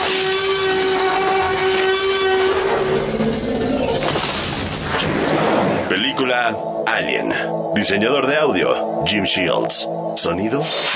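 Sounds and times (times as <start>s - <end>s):
tyrannosaurus roar sound effect: 0.0s - 5.9s
speech: 6.5s - 10.9s.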